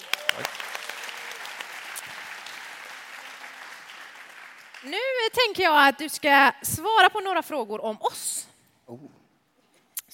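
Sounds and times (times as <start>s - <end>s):
applause: 0.0s - 5.6s
speech: 4.8s - 9.2s.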